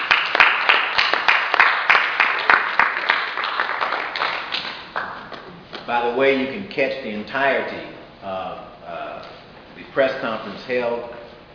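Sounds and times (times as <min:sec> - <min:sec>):
audience applause: 0:00.0 - 0:05.6
speech: 0:06.0 - 0:08.7, 0:10.0 - 0:11.2.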